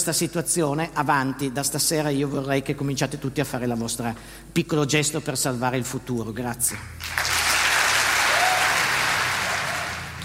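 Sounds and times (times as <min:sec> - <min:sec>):
speech: 0:00.0 - 0:07.3
audience applause: 0:07.0 - 0:10.2.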